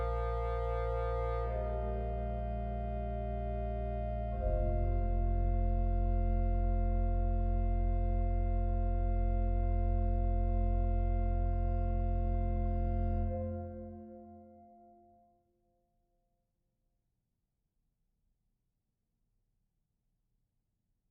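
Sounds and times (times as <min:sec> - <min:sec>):
organist playing chorales: 0:00.0 - 0:15.0.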